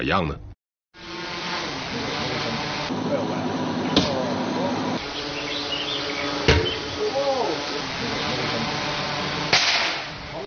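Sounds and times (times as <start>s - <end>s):
steady buzzing drone-like hum: 1.0s - 10.4s
metal arrows dropped by drone piercing boards: 9.5s - 10.2s.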